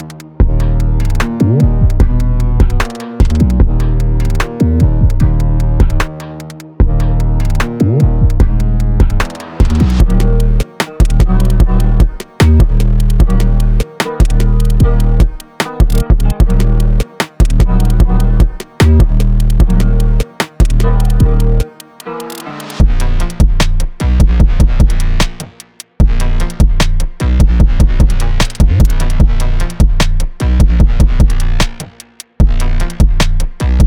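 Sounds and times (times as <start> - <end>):
trap sample pack beat: 0.0 - 33.8.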